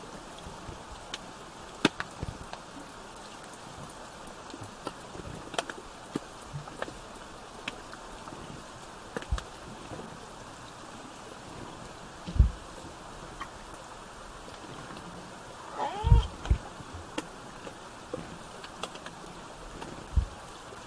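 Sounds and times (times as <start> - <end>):
steady background hiss: 0.0 - 20.8
underwater clicks: 1.0 - 2.6, 4.4 - 8.0, 9.1 - 9.5, 15.8 - 20.4
killer whale tonal call: 15.6 - 16.6.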